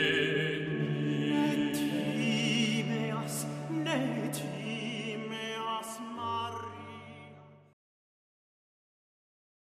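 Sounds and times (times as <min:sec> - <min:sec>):
sacred music piece: 0:00.0 - 0:07.8.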